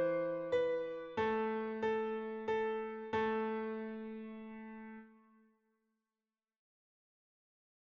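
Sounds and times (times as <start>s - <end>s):
piano: 0.0s - 5.4s.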